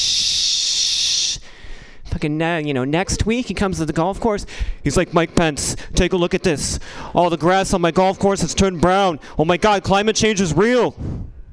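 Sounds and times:
voice imitating a spray nozzle of weed killer: 0.0s - 1.4s
speech: 2.2s - 11.3s.

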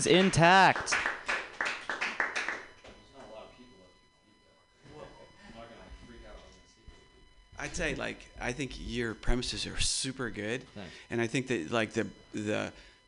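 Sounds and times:
speech: 0.0s - 1.2s, 7.6s - 12.9s
audience applause: 0.0s - 2.7s.

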